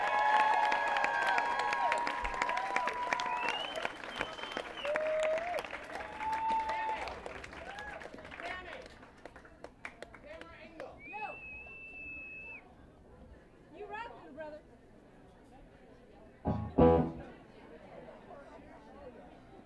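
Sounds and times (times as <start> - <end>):
concert audience applause and cheering for the sound man: 0.0 - 6.7
crowd voices: 16.5 - 17.3.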